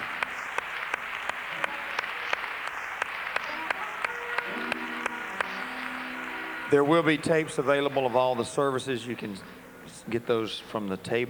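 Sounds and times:
audience clapping hands: 0.0s - 9.4s
speech: 6.7s - 11.2s.

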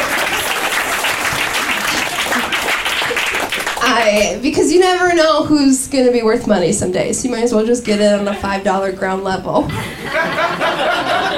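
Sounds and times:
laughter: 0.0s - 3.4s, 9.6s - 11.3s
audience applause: 0.0s - 4.2s
speech: 4.0s - 10.9s.

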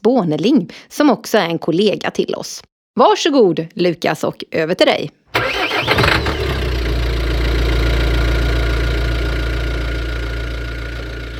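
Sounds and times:
speech: 0.0s - 5.6s
diesel engine starting: 5.3s - 11.3s.

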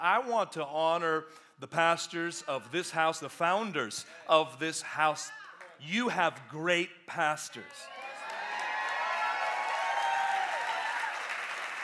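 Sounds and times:
speech: 0.0s - 8.0s
audience cheering: 7.6s - 11.8s.

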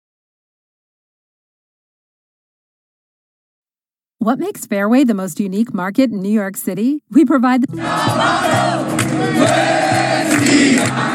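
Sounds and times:
speech: 4.2s - 11.1s
thousands of protesters chanting and shouting in the streets of Myanmar against the military coup: 7.7s - 11.1s.

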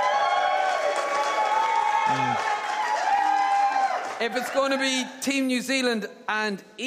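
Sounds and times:
audience cheering: 0.0s - 5.1s
speech: 4.2s - 6.8s.

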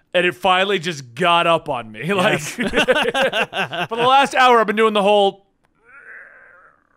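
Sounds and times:
speech: 0.2s - 5.4s
laughter: 2.1s - 4.4s
yawn: 5.8s - 6.9s.

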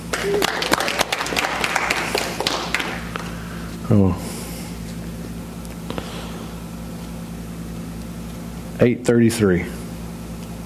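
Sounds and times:
congregation clapping at a Sunday evening church service: 0.1s - 3.3s
speech: 0.2s - 0.6s, 3.9s - 4.3s, 8.8s - 9.8s.

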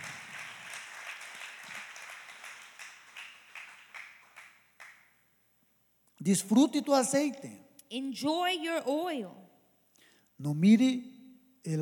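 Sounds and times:
audience applause: 0.0s - 5.1s
speech: 6.2s - 9.4s, 10.4s - 11.8s.

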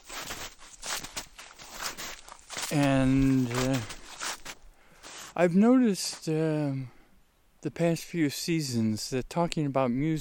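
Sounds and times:
crunchy footsteps outdoors past a solar installation: 0.0s - 5.4s
speech: 2.7s - 4.0s, 5.4s - 7.0s, 7.6s - 10.1s.

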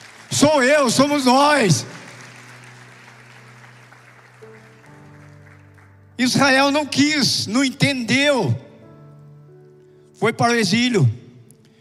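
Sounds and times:
audience applause: 0.0s - 6.0s
speech: 0.3s - 1.9s, 6.2s - 8.6s, 10.2s - 11.2s.

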